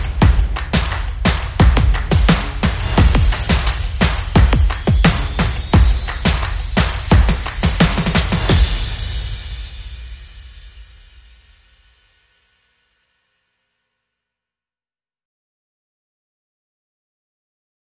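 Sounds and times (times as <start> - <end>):
thumping beats: 0.0 - 9.2.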